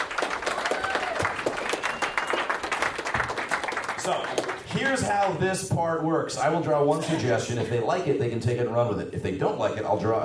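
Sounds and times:
audience clapping hands: 0:00.0 - 0:05.5
speech: 0:04.0 - 0:10.2.

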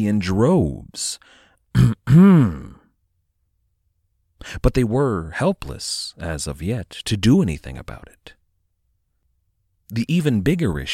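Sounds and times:
speech: 0:00.0 - 0:02.7, 0:04.4 - 0:08.4, 0:09.9 - 0:10.9
deliberate throat clearing: 0:01.7 - 0:02.9.

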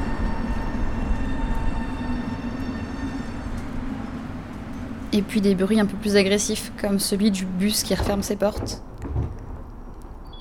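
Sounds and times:
tram rolling on a city street: 0:00.0 - 0:10.3
speech: 0:05.1 - 0:08.9.

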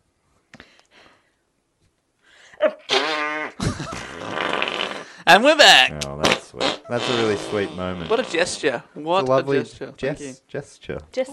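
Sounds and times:
fart sound effect: 0:02.9 - 0:05.2, 0:05.9 - 0:08.6
speech: 0:05.3 - 0:06.0, 0:06.9 - 0:11.3.

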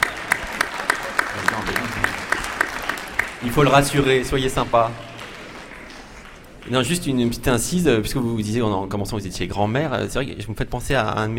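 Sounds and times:
audience applause: 0:00.0 - 0:07.7
speech: 0:03.4 - 0:05.1, 0:06.6 - 0:11.3.

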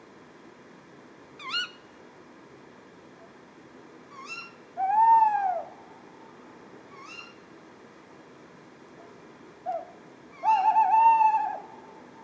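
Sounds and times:
tawny owl calls and hoots: 0:04.2 - 0:05.8, 0:06.9 - 0:07.4, 0:09.7 - 0:12.2.

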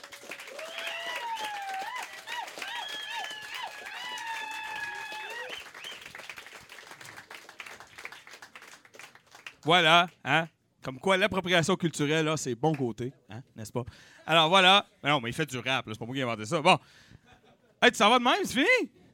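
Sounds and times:
audience applause: 0:00.0 - 0:09.6
cheers and whoops: 0:00.1 - 0:06.1
speech: 0:09.6 - 0:17.1, 0:17.8 - 0:19.0.

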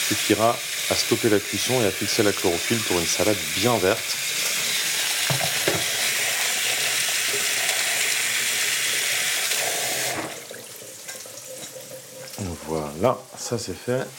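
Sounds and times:
meat sizzling as it fries in a pan: 0:00.0 - 0:10.3
speech: 0:00.1 - 0:04.2, 0:13.0 - 0:14.1.

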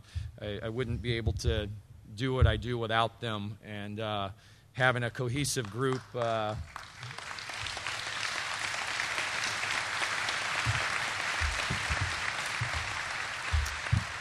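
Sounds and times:
speech: 0:00.4 - 0:07.2
applause: 0:05.4 - 0:14.2.

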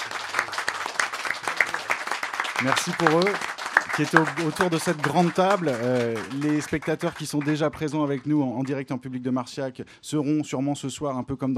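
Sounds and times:
audience applauding: 0:00.0 - 0:08.9
speech: 0:02.6 - 0:11.5.

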